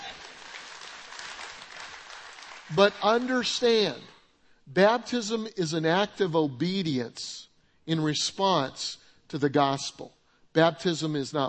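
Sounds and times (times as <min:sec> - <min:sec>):
audience applauding: 0:00.0 - 0:03.4
speech: 0:02.7 - 0:04.1, 0:04.7 - 0:11.4.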